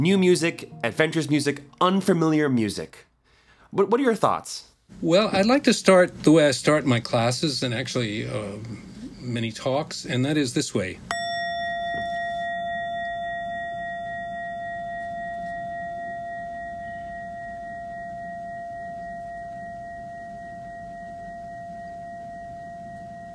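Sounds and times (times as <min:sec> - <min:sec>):
speech: 0:00.0 - 0:03.1, 0:03.7 - 0:11.2
Japanese temple bowl gong ringing: 0:11.1 - 0:23.3.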